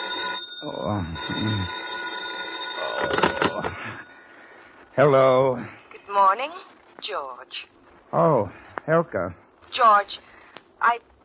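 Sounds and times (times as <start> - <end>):
telephone ringing: 0.0 - 4.4
speech: 0.8 - 1.8, 3.0 - 4.1, 5.0 - 11.1.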